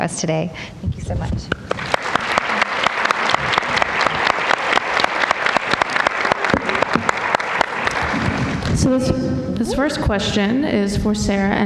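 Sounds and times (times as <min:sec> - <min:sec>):
speech: 0:00.0 - 0:01.9, 0:08.9 - 0:11.6
round of applause: 0:01.6 - 0:08.8.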